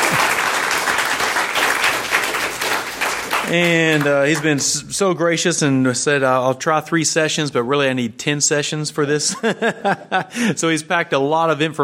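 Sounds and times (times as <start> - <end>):
audience applause: 0.0 - 4.6
speech: 3.5 - 11.8
laughter: 9.2 - 10.8.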